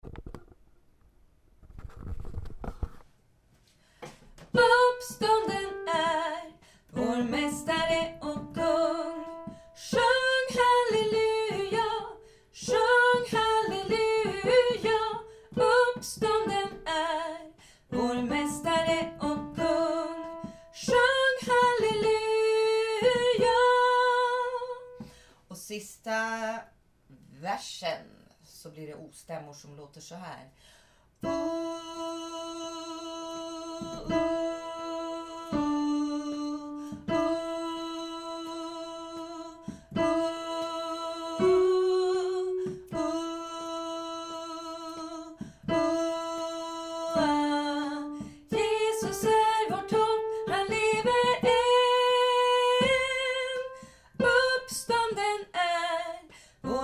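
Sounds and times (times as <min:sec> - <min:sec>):
soprano singing: 0:04.5 - 0:25.1, 0:31.2 - 0:56.8.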